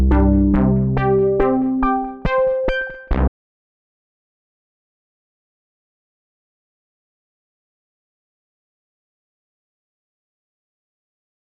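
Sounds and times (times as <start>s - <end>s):
digital ambient synth with pedal delay: 0.0s - 2.6s.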